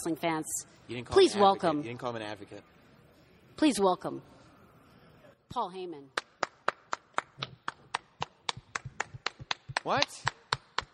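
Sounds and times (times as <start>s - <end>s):
speech: 0.0s - 2.8s, 3.6s - 4.3s, 5.5s - 6.2s, 9.8s - 10.4s
people clapping: 6.1s - 10.9s.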